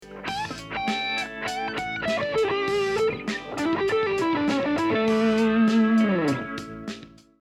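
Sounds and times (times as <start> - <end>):
backing track: 0.0 - 7.3.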